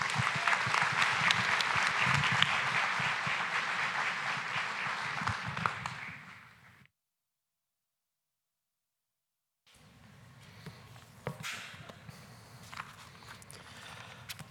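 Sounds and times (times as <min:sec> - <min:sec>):
audience applause welcoming a guest speaker at a morning talk on the Book of Revelation: 0:00.0 - 0:06.7.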